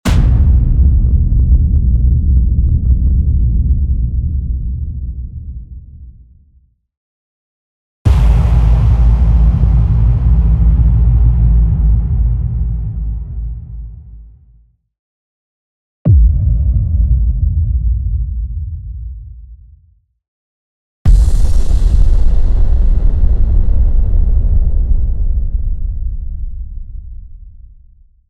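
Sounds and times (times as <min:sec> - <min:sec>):
nuclear explosion booms: 0:00.1 - 0:05.3, 0:08.1 - 0:14.2, 0:16.1 - 0:19.1, 0:21.1 - 0:27.9.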